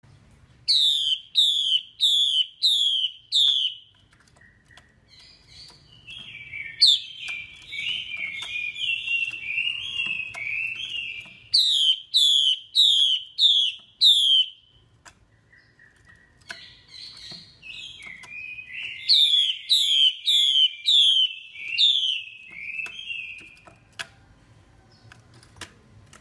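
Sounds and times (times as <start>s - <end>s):
Chinese hwamei call: 0.7s - 3.8s, 6.0s - 14.6s, 17.0s - 23.6s
quiet clicks: 3.3s - 11.6s, 14.8s - 19.2s, 21.4s - 26.1s.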